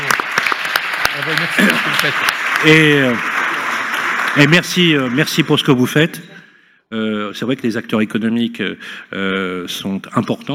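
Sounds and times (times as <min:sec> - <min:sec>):
audience applause: 0:00.0 - 0:06.0
speech: 0:01.2 - 0:03.4, 0:04.4 - 0:06.3, 0:06.9 - 0:10.5.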